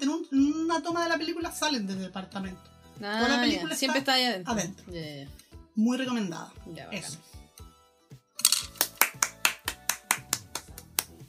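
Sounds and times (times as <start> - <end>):
speech: 0.2 - 7.4
attempted hand clapping: 8.4 - 11.2.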